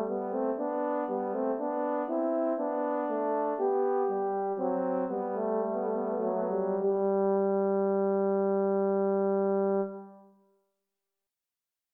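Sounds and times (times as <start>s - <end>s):
two horns playing a bourree: 0.0s - 10.2s.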